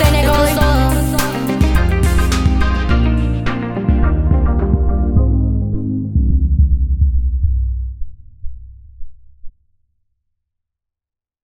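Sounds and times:
nightcore music with reverb: 0:00.0 - 0:08.9.

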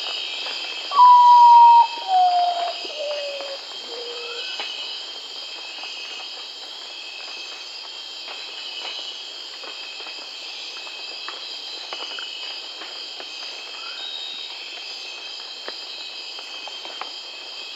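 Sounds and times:
common potoo Nyctibius griseus calling with whistled notes: 0:00.9 - 0:04.4.

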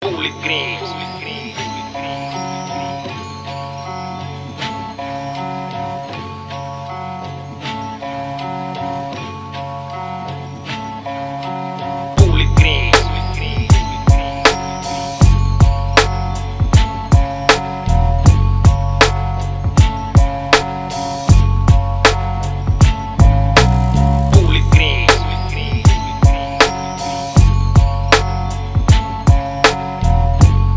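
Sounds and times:
music beat: 0:12.2 - 0:30.7.

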